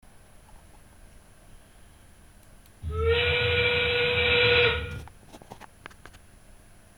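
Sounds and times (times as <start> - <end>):
owl: 2.8 - 5.1.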